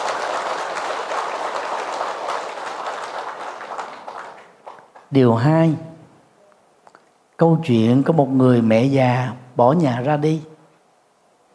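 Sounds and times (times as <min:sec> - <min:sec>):
audience applause: 0:00.0 - 0:05.1
speech: 0:05.1 - 0:05.9, 0:07.4 - 0:10.5.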